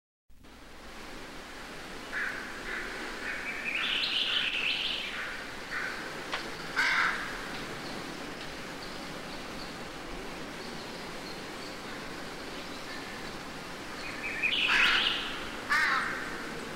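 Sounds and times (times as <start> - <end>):
crow cawing in woods: 2.1 - 6.0, 6.8 - 7.5, 14.5 - 16.5.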